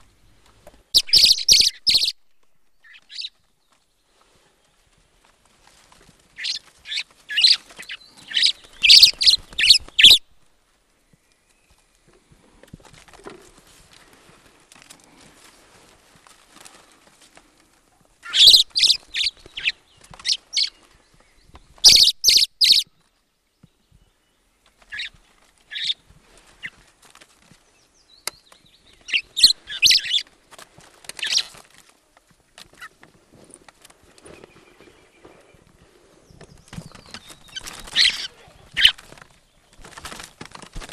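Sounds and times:
common blackbird singing near its nest: 1.0s - 3.4s, 6.4s - 10.2s, 18.2s - 22.9s, 27.8s - 30.2s, 36.2s - 39.7s.

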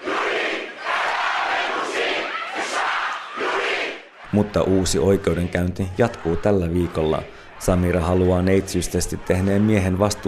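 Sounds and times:
crowd shouting revolutionary slogans: 0.0s - 10.2s
speech: 4.3s - 10.2s.

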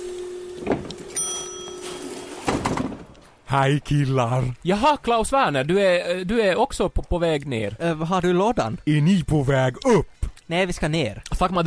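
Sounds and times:
elevator chime: 1.1s - 2.5s
speech: 3.5s - 11.6s.

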